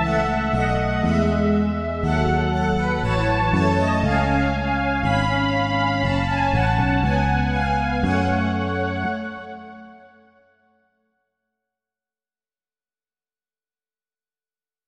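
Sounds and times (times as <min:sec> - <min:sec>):
synthesizer: 0:00.0 - 0:10.7.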